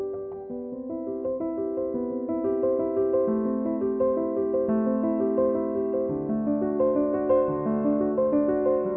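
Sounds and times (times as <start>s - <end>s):
piano prelude: 0.0s - 8.9s.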